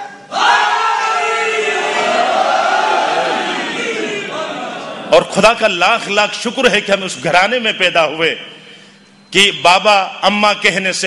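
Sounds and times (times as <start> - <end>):
crowd at a religious gathering chanting a slogan: 0.3 - 5.1
speech: 5.3 - 8.5, 9.3 - 11.0.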